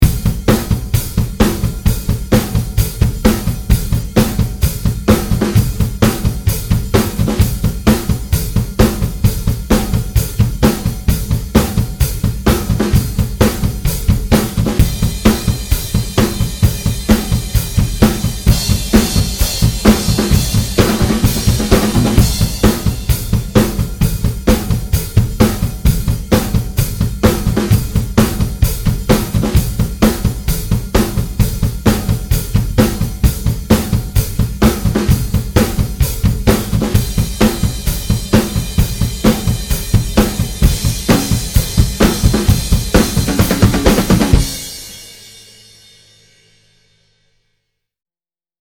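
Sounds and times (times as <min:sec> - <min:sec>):
rock drums: 0:00.0 - 0:46.3.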